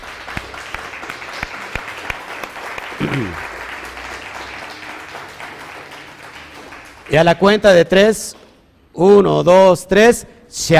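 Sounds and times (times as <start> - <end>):
audience applause: 0.0 - 7.4
speech: 3.0 - 3.5, 7.1 - 8.4, 9.0 - 10.7.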